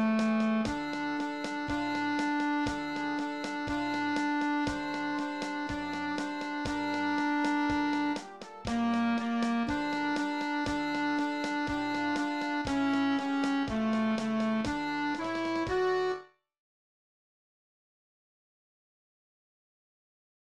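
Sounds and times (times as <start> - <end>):
alto saxophone: 0.0 - 16.3
clarinet: 0.0 - 16.4.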